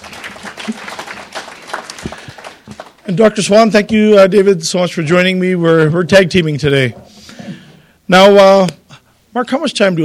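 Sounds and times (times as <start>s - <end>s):
audience round of applause: 0.0s - 3.1s
speech: 3.1s - 7.1s, 8.1s - 10.0s.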